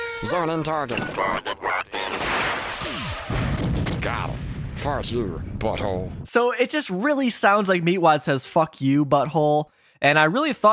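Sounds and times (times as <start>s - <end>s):
speech: 0.2s - 3.5s, 4.1s - 10.7s
cartoon missiles exploding in an animated episode: 0.9s - 6.3s.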